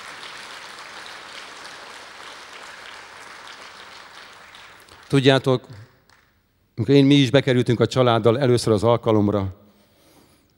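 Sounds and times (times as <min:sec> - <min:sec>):
audience applause: 0:00.0 - 0:06.3
speech: 0:05.1 - 0:05.8, 0:06.8 - 0:09.6.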